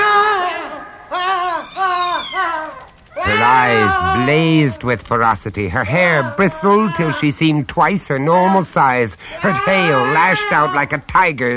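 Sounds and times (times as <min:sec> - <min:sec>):
cat yowling angrily as it attacks: 0:00.0 - 0:04.9, 0:09.4 - 0:10.8
speech: 0:03.2 - 0:11.5.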